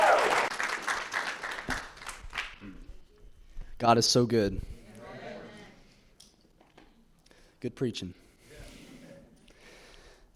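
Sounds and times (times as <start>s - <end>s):
audience applause: 0.0s - 2.6s
speech: 3.8s - 4.7s, 7.6s - 8.2s.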